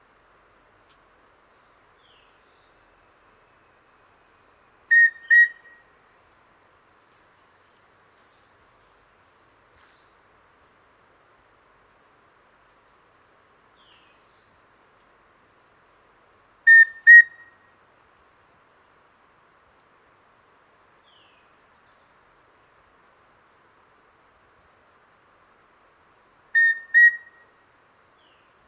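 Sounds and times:
Formicarius rufipectus rufous-breasted antthrush song: 0:04.9 - 0:05.8, 0:26.6 - 0:27.5.

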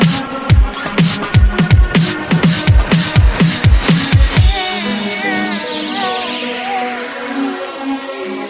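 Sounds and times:
breakbeat drums: 0:00.0 - 0:06.2.

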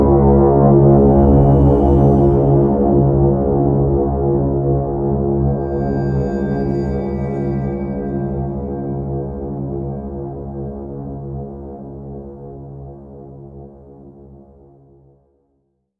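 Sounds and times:
alien drone: 0:00.0 - 0:11.4.

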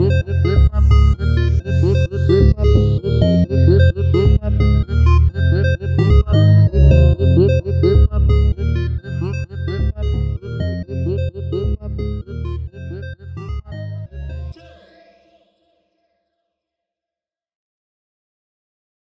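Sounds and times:
chiptune music: 0:00.0 - 0:14.6.

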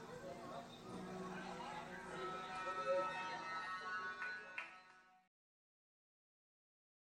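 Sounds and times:
acoustic music: 0:00.2 - 0:05.2.

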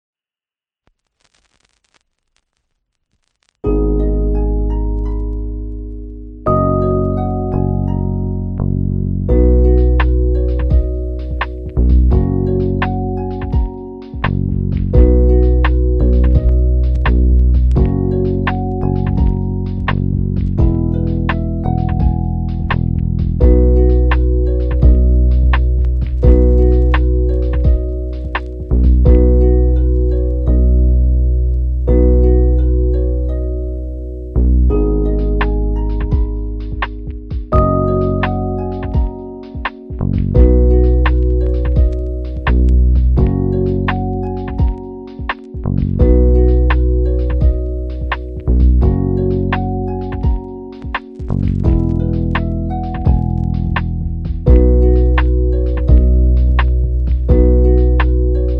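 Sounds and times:
sad music: 0:03.7 - 0:58.5.

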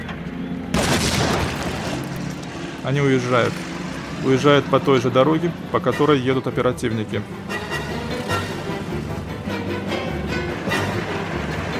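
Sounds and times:
sustained noisy roar: 0:00.0 - 0:11.7
grenade thrown into a basement exploding: 0:00.7 - 0:02.6
speech: 0:02.8 - 0:07.6.

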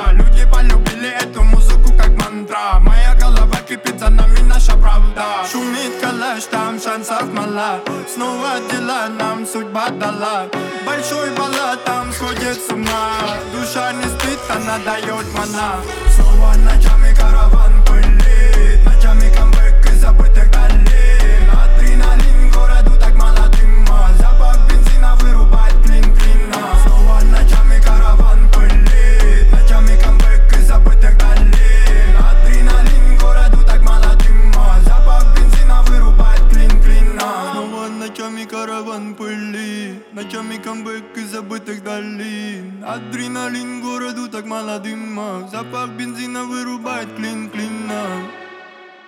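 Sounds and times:
29-33 Hz low bass tone: 0:00.0 - 0:02.2, 0:02.8 - 0:05.2, 0:16.0 - 0:37.2.

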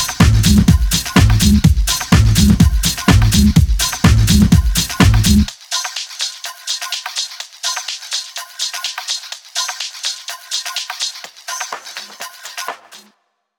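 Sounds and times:
bass beats: 0:00.0 - 0:05.5.

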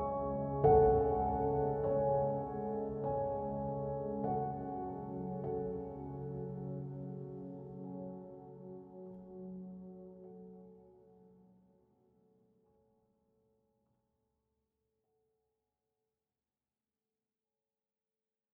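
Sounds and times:
calm piano study music: 0:00.0 - 0:13.1.

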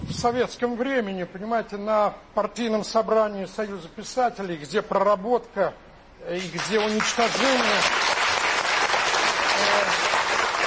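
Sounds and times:
speech: 0:00.2 - 0:08.0
audience applause: 0:06.6 - 0:10.6.

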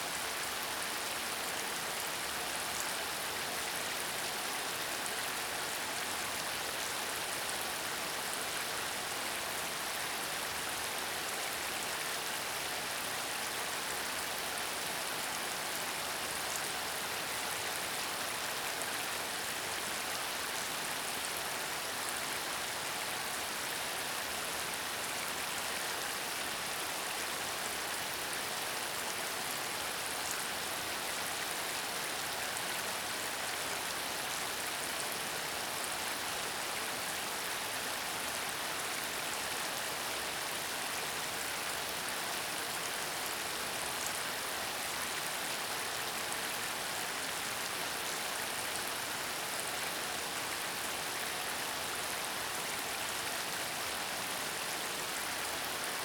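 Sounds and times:
rain on a creek: 0:00.0 - 0:56.0.

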